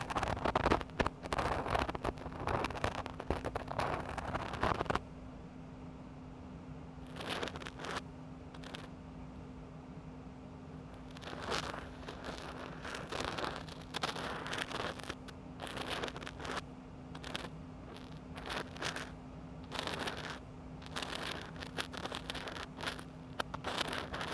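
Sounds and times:
rubber spiral and spatula ear pick cleaning left ear: 0.0s - 5.0s, 7.0s - 8.9s, 10.9s - 24.3s
tissue rubbing ear: 0.0s - 5.0s, 11.0s - 16.6s, 17.2s - 24.3s.

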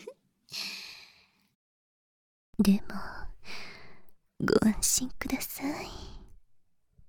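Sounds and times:
person whispering in a bath: 2.6s - 3.4s, 4.4s - 6.3s.

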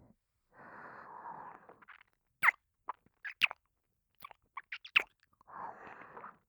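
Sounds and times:
ear licking: 1.7s - 3.6s, 4.2s - 6.4s.

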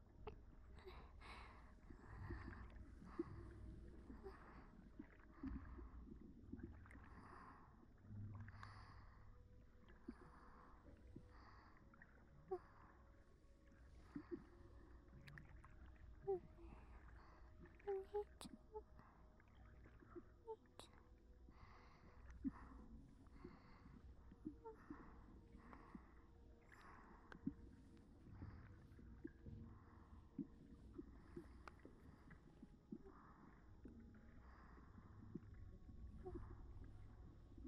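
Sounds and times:
water: 0.0s - 37.6s
breathing: 0.8s - 6.2s, 6.8s - 13.2s, 16.6s - 17.8s, 21.5s - 35.6s.

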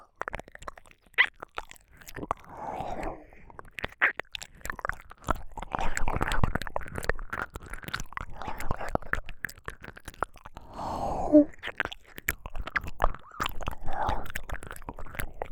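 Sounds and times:
wet ear licking: 0.1s - 15.5s
whispering: 2.4s - 3.4s, 13.8s - 14.4s.

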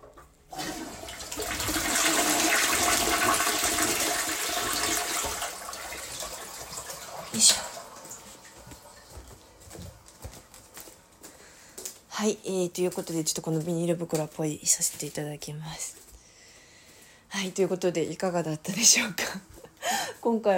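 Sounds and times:
toilet being flushed: 0.5s - 9.2s
speech: 12.2s - 16.1s, 17.4s - 20.5s.

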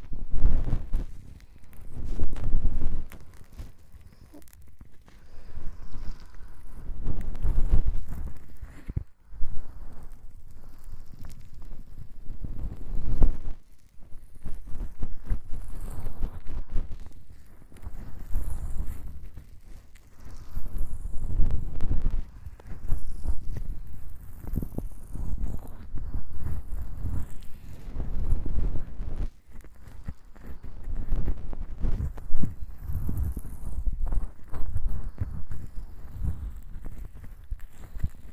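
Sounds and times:
finger scratching at both ears: 0.0s - 38.3s
breathing into both ears: 3.9s - 7.1s.

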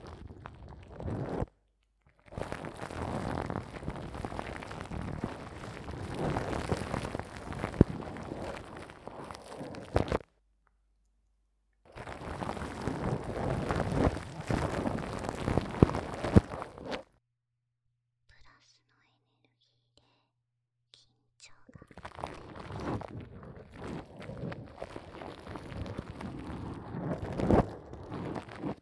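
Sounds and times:
ASMR oil wrapping sounds: 2.2s - 10.2s, 11.9s - 17.0s, 21.9s - 28.8s.

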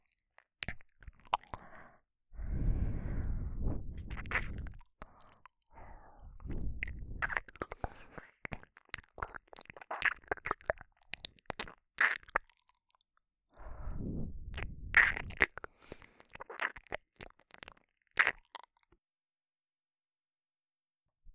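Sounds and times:
ear licking: 0.6s - 12.7s, 13.7s - 18.7s.

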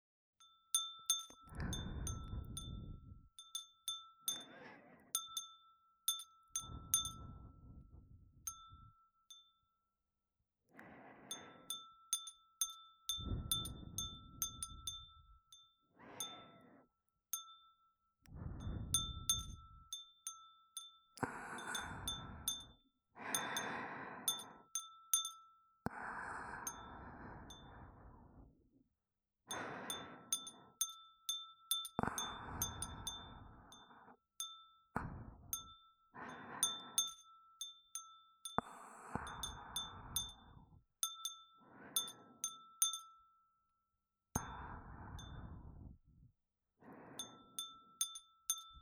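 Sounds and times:
glass wind chime: 0.4s - 9.8s, 11.3s - 16.7s, 17.3s - 25.9s, 26.5s - 27.9s, 29.5s - 43.7s, 44.4s - 45.7s, 47.2s - 48.7s
breathing: 1.3s - 5.5s, 6.6s - 9.0s, 10.7s - 15.2s, 15.9s - 17.0s, 18.3s - 19.9s, 20.8s - 28.7s, 29.5s - 31.1s, 31.7s - 43.1s, 44.4s - 46.2s, 46.8s - 48.7s.

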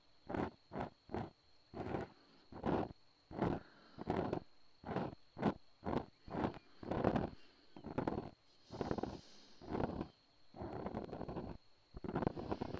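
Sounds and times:
ear cleaning: 0.3s - 12.7s
breathing into the left ear: 2.0s - 2.6s, 3.5s - 4.4s, 7.3s - 10.8s, 12.2s - 12.7s.

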